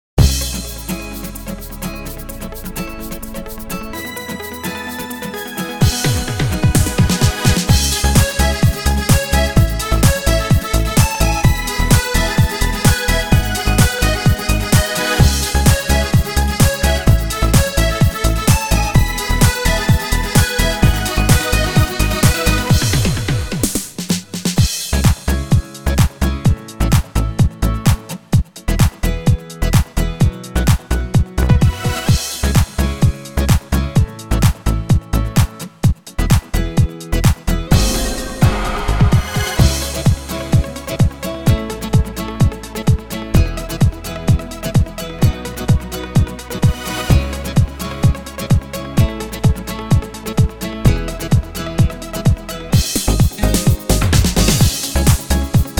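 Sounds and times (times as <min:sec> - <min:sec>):
disco music: 0:00.2 - 0:55.7.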